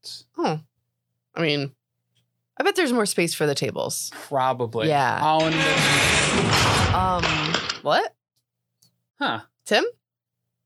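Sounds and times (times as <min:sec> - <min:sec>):
speech: 0:00.0 - 0:00.7, 0:01.4 - 0:01.8, 0:02.6 - 0:08.1, 0:09.2 - 0:10.0
heavy automatic vault door opening: 0:05.2 - 0:07.8.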